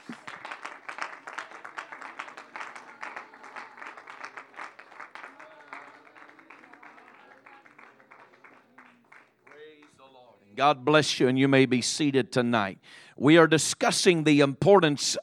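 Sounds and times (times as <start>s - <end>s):
audience clapping hands in praise: 0.0s - 10.4s
speech: 10.6s - 15.2s.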